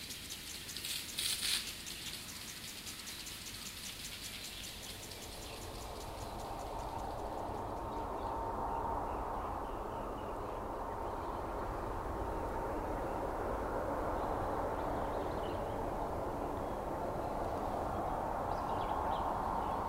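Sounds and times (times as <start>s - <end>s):
lawn sprinklers: 0.0s - 7.6s
cicadas chirping: 0.0s - 19.8s.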